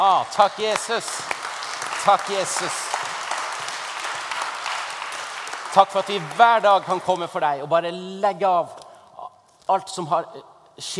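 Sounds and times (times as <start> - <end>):
speech: 0.0 - 1.4, 2.0 - 2.8, 5.8 - 8.8, 9.7 - 10.9
crowd applauding: 0.0 - 7.6.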